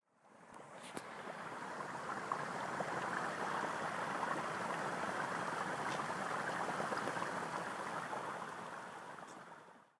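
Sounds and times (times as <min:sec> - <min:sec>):
boiling hot spring water in Taiwan: 0:00.1 - 0:09.9.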